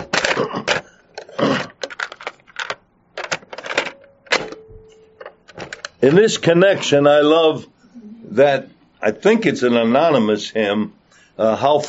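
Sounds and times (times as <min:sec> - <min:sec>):
clicks and clunks of a cassette tape being turned over in a recorder: 0:00.0 - 0:06.0
speech: 0:00.4 - 0:00.6, 0:06.0 - 0:07.7, 0:08.4 - 0:11.8.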